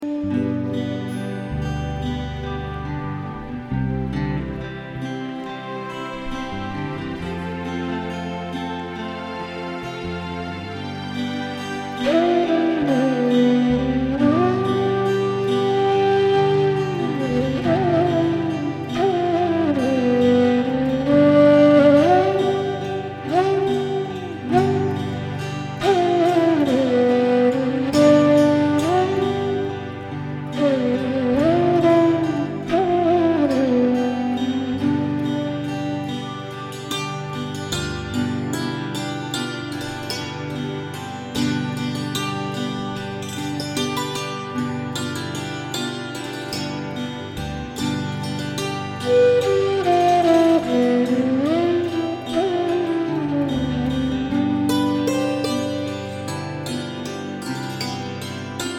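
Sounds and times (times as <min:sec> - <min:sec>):
ambient raga: 0:00.0 - 0:58.7.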